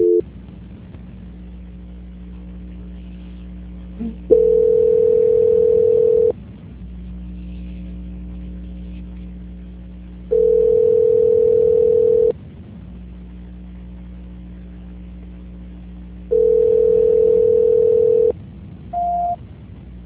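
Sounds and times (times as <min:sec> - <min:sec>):
telephone tones during call transfer: 0:00.0 - 0:00.2, 0:04.3 - 0:06.3, 0:10.3 - 0:12.3, 0:16.3 - 0:18.3, 0:19.0 - 0:19.4
constant low hum: 0:00.0 - 0:20.0.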